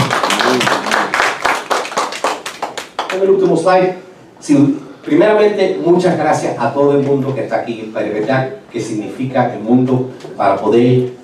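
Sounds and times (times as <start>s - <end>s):
congregation clapping in praise during a bilingual church service: 0.0s - 3.6s
speech: 3.2s - 11.2s.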